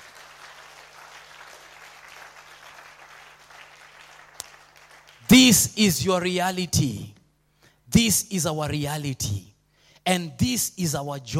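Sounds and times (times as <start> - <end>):
audience clapping hands: 0.0 - 5.6
speech: 5.3 - 7.2, 7.9 - 11.3.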